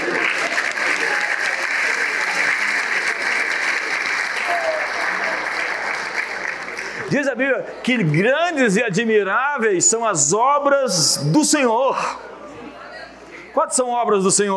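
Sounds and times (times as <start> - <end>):
audience applause: 0.0 - 8.5
speech: 7.1 - 12.3, 13.6 - 14.5.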